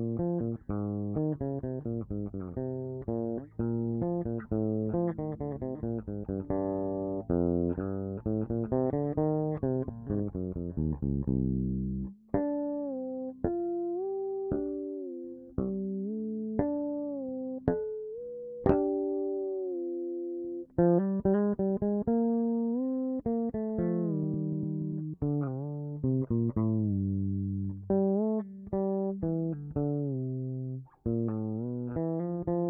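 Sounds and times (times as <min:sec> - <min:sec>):
guitar whammy drop tune: 0:00.0 - 0:32.6.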